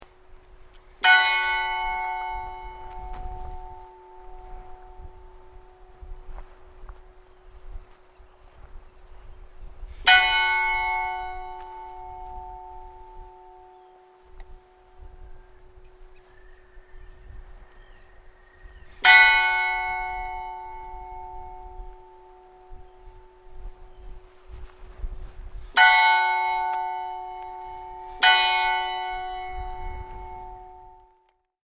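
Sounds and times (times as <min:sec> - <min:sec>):
Hallgrimskirkja Saurbae funeral church bells tolling: 0:01.0 - 0:06.5, 0:10.0 - 0:16.2, 0:19.0 - 0:24.4, 0:25.7 - 0:31.3.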